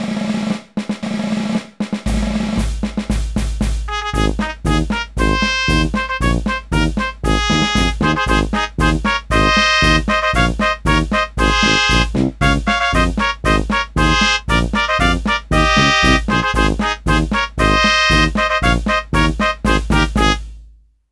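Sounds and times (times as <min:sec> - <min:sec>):
instrumental music: 0:00.1 - 0:20.9.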